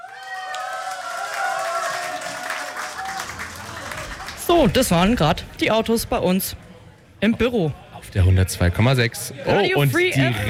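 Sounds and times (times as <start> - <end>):
audience applause for the bands: 0.0 - 5.2
speech: 4.5 - 10.4.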